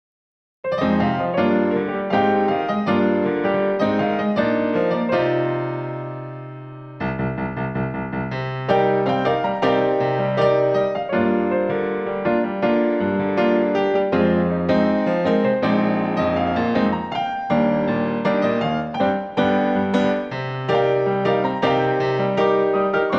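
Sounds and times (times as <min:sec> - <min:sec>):
piano: 0:00.6 - 0:23.1.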